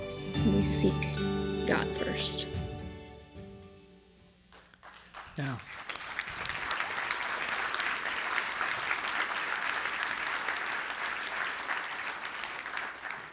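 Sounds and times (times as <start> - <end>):
speech: 0.4 - 2.6, 5.4 - 5.7
audience cheering: 4.8 - 13.3.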